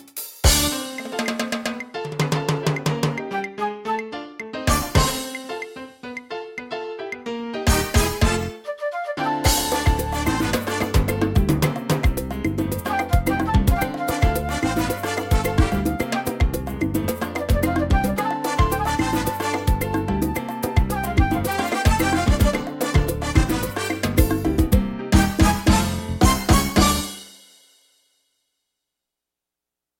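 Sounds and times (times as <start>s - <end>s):
Latin pop music: 0.0s - 27.4s.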